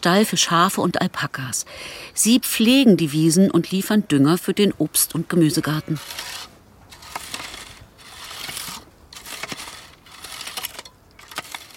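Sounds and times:
speech: 0:00.0 - 0:06.5
stirrup hoe cutting weeds in soil: 0:05.5 - 0:11.7.

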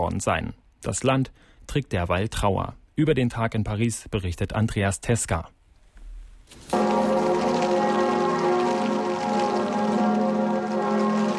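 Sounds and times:
speech: 0:00.1 - 0:05.6
bells of Notre-Dame church ringing in Paris: 0:06.7 - 0:11.3.

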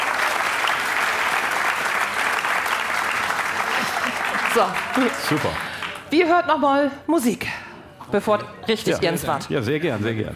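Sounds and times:
theater audience applause: 0:00.0 - 0:06.1
speech: 0:04.6 - 0:10.3.

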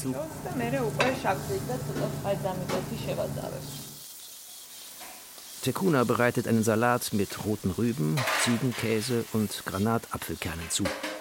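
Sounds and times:
speech: 0:00.0 - 0:03.8, 0:05.6 - 0:11.1
red onions sizzling in a pan: 0:00.0 - 0:11.1
utensil scraping and stirring onions: 0:01.0 - 0:11.1.

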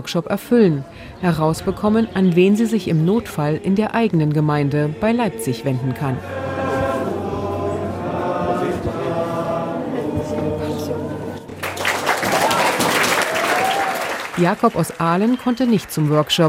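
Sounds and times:
speech: 0:00.0 - 0:06.4, 0:14.4 - 0:16.4
tonal hum-like sounds: 0:00.0 - 0:11.8
murmur of voices: 0:00.5 - 0:11.6
applause and cheering at a food counter: 0:11.5 - 0:16.4.

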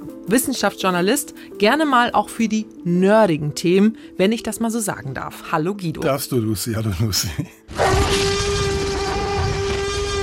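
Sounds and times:
speech: 0:00.3 - 0:08.2
Tyrannosaurus rex roar: 0:07.7 - 0:10.2.

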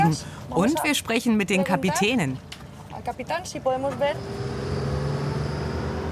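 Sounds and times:
speech: 0:00.1 - 0:04.5
motorboat engine droning as boats cast off to check yacht anchors: 0:04.1 - 0:06.1.

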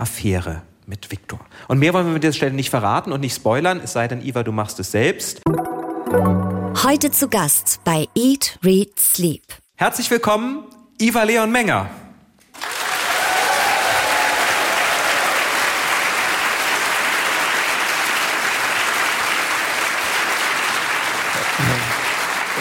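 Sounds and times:
speech: 0:00.0 - 0:12.0
audience applause: 0:12.6 - 0:22.5.

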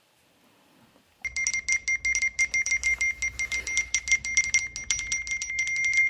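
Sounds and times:
iPhone message alert chimes from flood of SMS: 0:01.2 - 0:06.0.

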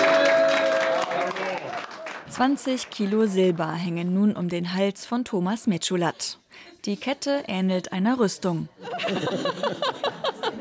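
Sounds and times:
audience clapping: 0:00.0 - 0:03.9
speech: 0:02.4 - 0:10.2
laughter: 0:08.8 - 0:10.5.

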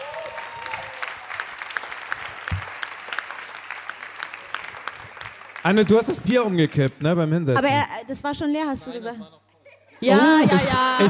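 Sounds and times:
audience applause: 0:00.0 - 0:07.5
speech: 0:05.6 - 0:09.4, 0:10.0 - 0:11.0.

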